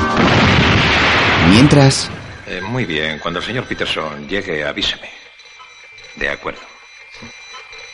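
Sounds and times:
explosion as a robot's projectile blows a van to scrap in a 1979 science-fiction film: 0:00.2 - 0:02.5
speech: 0:01.6 - 0:02.2, 0:02.8 - 0:05.2, 0:06.2 - 0:07.4.

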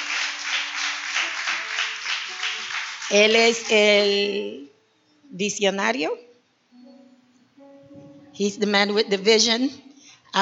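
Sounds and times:
audience applauding: 0:00.0 - 0:03.9
speech: 0:03.1 - 0:04.7, 0:05.3 - 0:06.3, 0:08.4 - 0:10.4.

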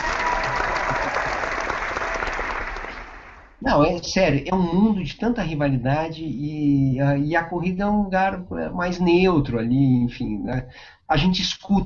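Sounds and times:
group applause: 0:00.0 - 0:03.6
speech: 0:03.7 - 0:11.8.

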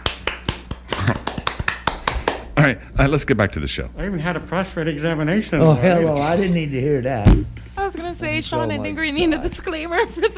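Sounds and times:
hand claps: 0:00.0 - 0:02.5
speech: 0:02.6 - 0:07.6, 0:08.2 - 0:10.3.

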